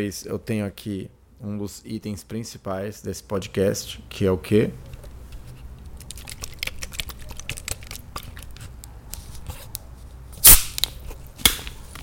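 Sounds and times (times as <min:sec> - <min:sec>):
speech: 0:00.0 - 0:04.9
plastic bottle crinkling: 0:05.6 - 0:08.8.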